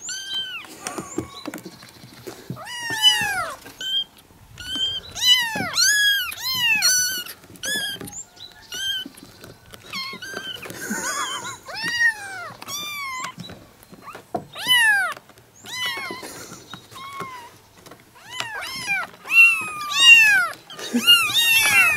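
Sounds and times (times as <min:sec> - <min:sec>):
kittens meowing: 0:00.0 - 0:01.7, 0:02.5 - 0:17.6, 0:18.2 - 0:21.9.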